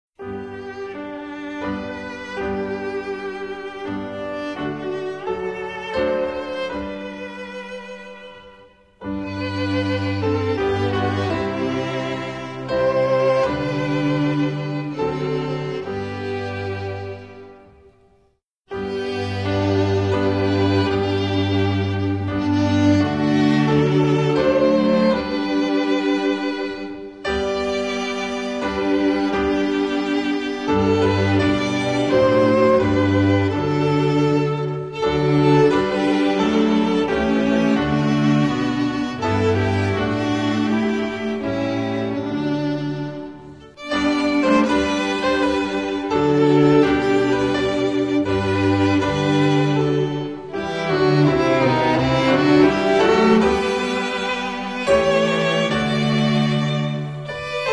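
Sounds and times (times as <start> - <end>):
instrumental music: 0.2 - 57.7.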